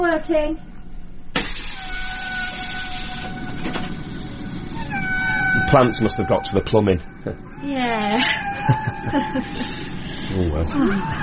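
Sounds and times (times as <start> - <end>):
speech: 0.1 - 0.7, 5.7 - 11.2
whale song: 1.6 - 6.7, 7.4 - 9.9
laughter: 8.1 - 11.2.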